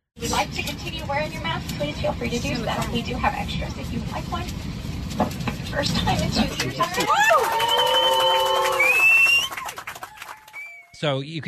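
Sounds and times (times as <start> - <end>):
speech: 0.2 - 8.3, 11.0 - 11.4
passengers on a plane cheering and whooping: 6.7 - 11.0
passengers whistling on a plane: 7.5 - 11.0.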